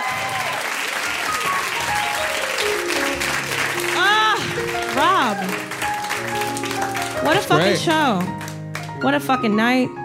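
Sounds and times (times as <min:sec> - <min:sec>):
faint cheering: 0:00.0 - 0:07.0
steady dense crowd applause: 0:00.0 - 0:09.0
speech: 0:07.3 - 0:08.4, 0:09.0 - 0:10.0.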